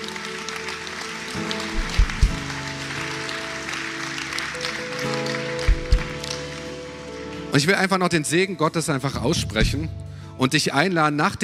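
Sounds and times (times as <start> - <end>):
audience applause: 0.0 - 7.8
speech: 7.6 - 11.4.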